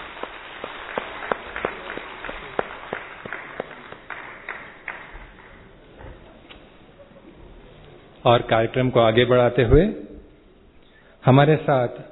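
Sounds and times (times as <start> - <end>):
audience clapping for a children's skit: 0.0 - 5.9
speech: 8.2 - 10.0, 11.2 - 12.1.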